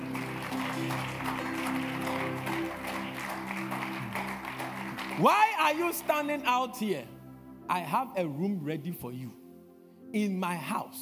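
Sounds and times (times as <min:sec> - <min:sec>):
audience clapping: 0:00.0 - 0:06.9
speech: 0:05.2 - 0:09.4, 0:10.1 - 0:11.0.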